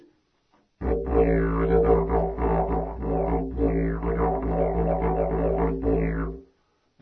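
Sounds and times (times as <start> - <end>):
didgeridoo lesson: 0.8 - 6.4.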